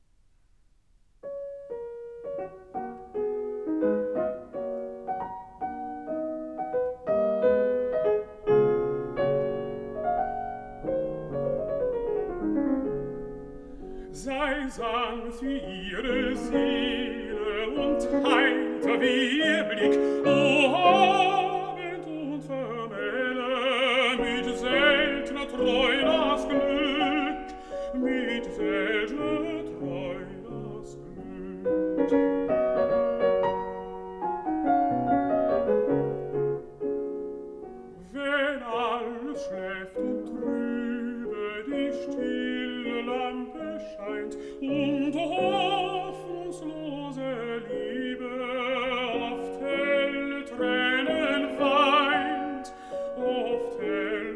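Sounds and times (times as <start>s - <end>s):
piano: 0.0s - 54.3s
person singing: 13.7s - 32.8s, 38.0s - 54.3s.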